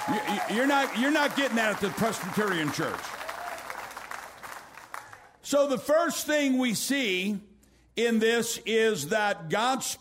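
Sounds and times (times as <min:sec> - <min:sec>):
speech: 0:00.0 - 0:03.2, 0:05.5 - 0:09.9
audience clapping: 0:00.0 - 0:05.4.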